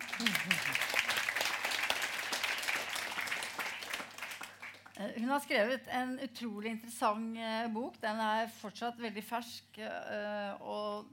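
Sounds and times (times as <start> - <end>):
audience applause: 0.0 - 5.0
speech: 0.2 - 1.0, 5.0 - 11.1.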